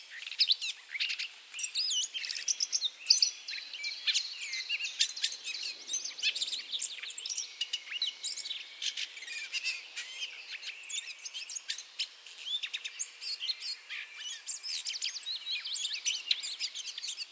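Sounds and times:
Eurasian blackcap warbling song: 0.0 - 17.3.

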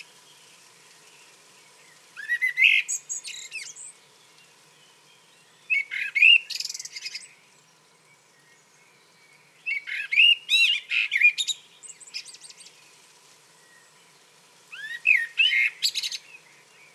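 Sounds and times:
common blackbird Turdus merula song: 0.0 - 16.9.

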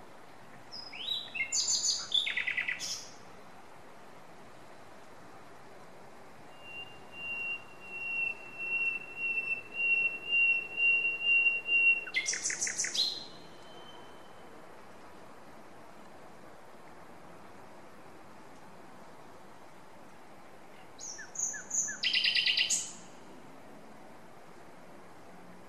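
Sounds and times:
Common nightingale singing: 0.7 - 3.2, 6.5 - 14.6, 20.8 - 23.2.

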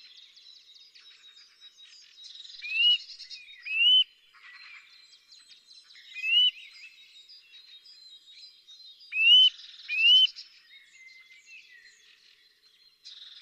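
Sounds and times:
Sitta europaea Eurasian nuthatch whistling: 3.7 - 4.0, 9.1 - 10.3.

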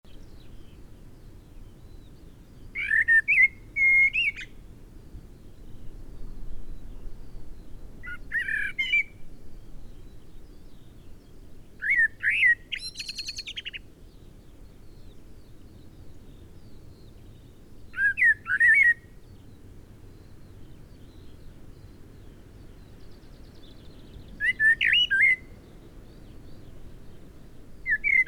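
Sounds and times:
Eurasian blackbird singing: 1.8 - 4.6, 8.0 - 9.2, 11.8 - 13.9, 17.9 - 19.1, 22.8 - 27.2, 27.9 - 28.2.

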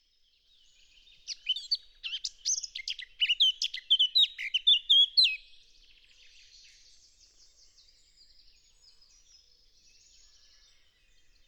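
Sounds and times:
Eurasian blackcap song: 0.9 - 5.4.

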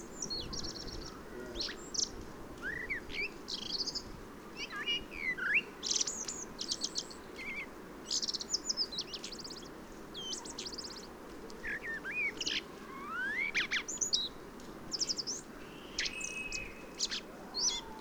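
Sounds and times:
common blackbird song: 0.0 - 18.0.

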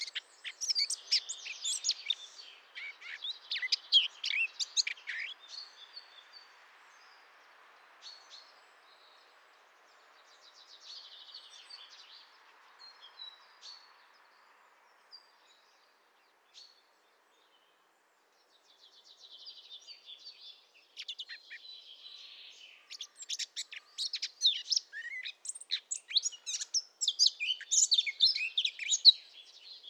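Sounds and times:
Eurasian blackcap warbling song: 0.0 - 5.7, 22.2 - 29.8.

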